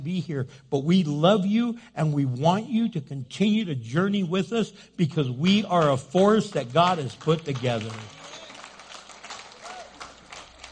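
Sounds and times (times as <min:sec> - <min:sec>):
speech: 0:00.0 - 0:08.4
audience applause: 0:06.6 - 0:10.6.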